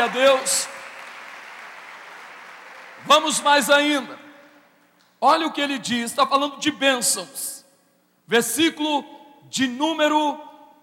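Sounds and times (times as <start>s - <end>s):
speech: 0.0s - 0.8s, 3.0s - 4.2s, 5.2s - 7.6s, 8.3s - 10.5s
audience clapping: 0.0s - 3.7s.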